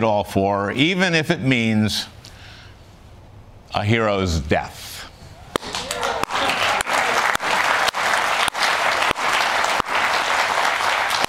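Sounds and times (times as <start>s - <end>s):
speech: 0.0s - 2.2s, 3.7s - 4.9s
studio audience applause: 5.6s - 11.2s.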